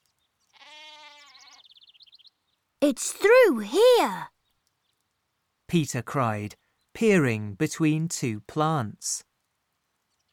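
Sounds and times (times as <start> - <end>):
small lamb bleating: 0.5 - 1.6
speech: 2.8 - 4.3, 5.7 - 9.3.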